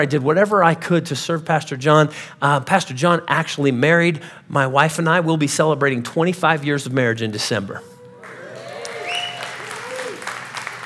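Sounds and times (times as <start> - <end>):
speech: 0.0 - 7.9
vocal whoops: 7.8 - 10.4
audience clapping: 8.2 - 10.8.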